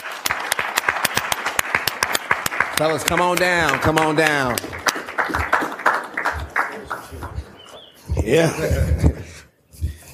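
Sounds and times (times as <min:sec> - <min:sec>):
audience applauding as panelists come on stage: 0:00.0 - 0:08.0
speech: 0:02.8 - 0:05.4, 0:08.2 - 0:09.2.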